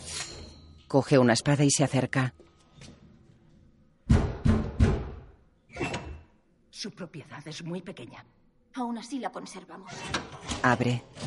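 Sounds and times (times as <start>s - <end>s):
speech: 0.9s - 2.9s, 6.8s - 11.2s
house door heavy wooden thuds and rattles: 4.1s - 5.2s.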